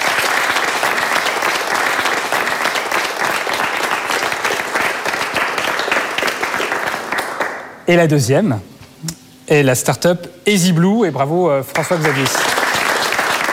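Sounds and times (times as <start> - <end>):
audience applause: 0.0 - 7.7, 11.7 - 13.5
speech: 7.9 - 12.4.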